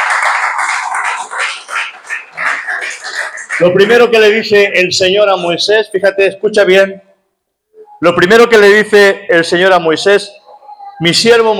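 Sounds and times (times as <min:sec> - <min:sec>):
audience applause: 0:00.0 - 0:04.1
speech: 0:03.6 - 0:07.1, 0:08.0 - 0:10.4, 0:11.0 - 0:11.5.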